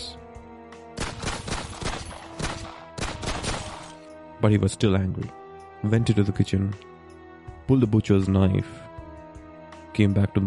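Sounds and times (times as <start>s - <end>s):
gunfire from an intruder's gun: 1.0s - 4.0s
speech: 4.4s - 6.9s, 7.7s - 8.8s, 10.0s - 10.4s.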